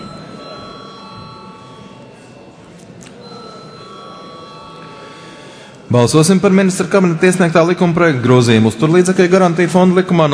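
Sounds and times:
chairman's bell ringing in parliament: 0:00.0 - 0:02.5, 0:03.2 - 0:05.7
murmur of voices: 0:00.0 - 0:10.3
speech: 0:05.9 - 0:10.3.

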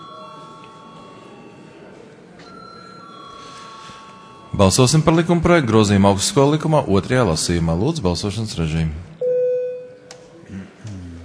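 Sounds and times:
bell rung to call a vote: 0:00.0 - 0:05.6
murmur of voices: 0:00.0 - 0:09.2, 0:09.8 - 0:11.2
speech: 0:04.6 - 0:09.1.

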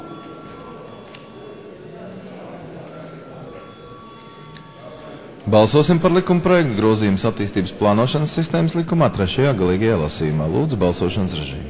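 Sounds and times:
parliament chamber electric bell rung before a vote: 0:00.0 - 0:02.2, 0:02.8 - 0:08.2
murmur: 0:00.0 - 0:11.6
speech: 0:05.5 - 0:11.6.

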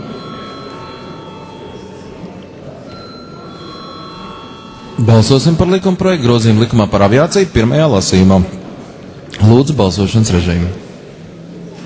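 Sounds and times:
parliament chamber bell ringing: 0:00.0 - 0:06.9
low murmur: 0:00.0 - 0:11.8
speech: 0:05.0 - 0:08.6, 0:09.4 - 0:10.8.

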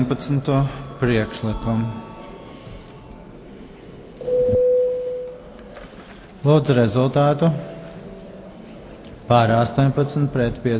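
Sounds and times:
speech: 0:00.0 - 0:02.1, 0:06.4 - 0:07.7, 0:09.3 - 0:10.7
low murmur: 0:00.0 - 0:10.7
parliament voting bell electronic tone: 0:00.4 - 0:02.6, 0:04.2 - 0:05.5.

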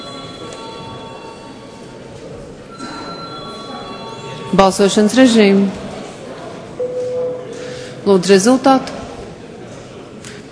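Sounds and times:
voting bell ringing in a parliament chamber: 0:00.0 - 0:05.8, 0:06.8 - 0:07.9
low murmur: 0:00.0 - 0:10.4
speech: 0:04.5 - 0:05.8, 0:08.1 - 0:09.0.

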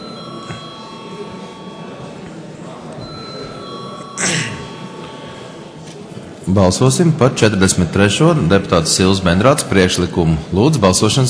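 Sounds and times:
chamber bell ringing to call a vote: 0:00.0 - 0:02.2, 0:03.0 - 0:05.8
low murmur of voices: 0:00.0 - 0:11.2
speech: 0:06.5 - 0:11.2.

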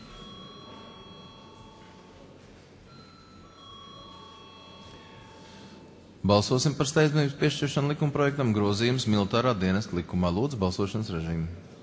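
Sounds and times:
parliamentary voting bell ringing: 0:00.0 - 0:09.2
speech: 0:06.2 - 0:11.7.

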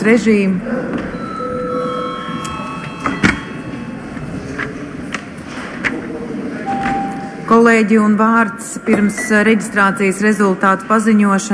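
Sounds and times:
speech: 0:00.0 - 0:00.9, 0:07.5 - 0:11.5
murmur: 0:00.0 - 0:11.5
bell ringing: 0:01.1 - 0:05.0, 0:06.7 - 0:07.6
knocks and clicks: 0:02.4 - 0:03.6.

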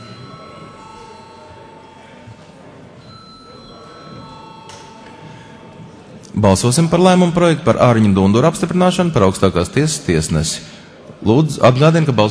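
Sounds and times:
parliamentary electric bell ringing before a vote: 0:00.0 - 0:02.2, 0:03.0 - 0:05.7
faint room murmur: 0:00.0 - 0:12.2
speech: 0:06.4 - 0:12.2.

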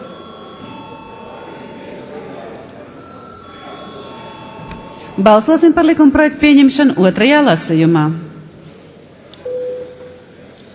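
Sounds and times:
parliament voting bell ringing: 0:00.0 - 0:06.7
low murmur of voices: 0:00.0 - 0:10.7
speech: 0:05.2 - 0:08.2.

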